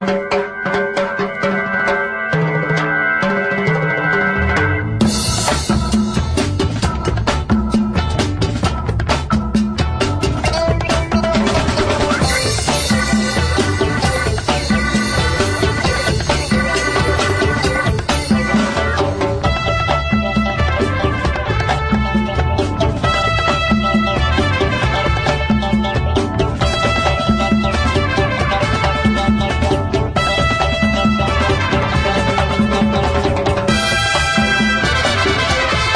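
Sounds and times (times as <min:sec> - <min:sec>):
Afro percussion: 0:00.0 - 0:35.9.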